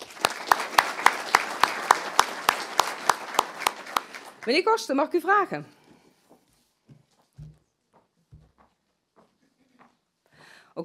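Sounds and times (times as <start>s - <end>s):
audience applauding in a rhythmic beat: 0.0s - 5.0s
speech: 4.4s - 5.8s.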